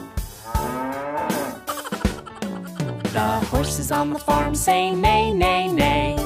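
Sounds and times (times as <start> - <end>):
cow mooing: 0.4 - 1.7
laughter: 1.7 - 3.5
speech: 3.7 - 6.1.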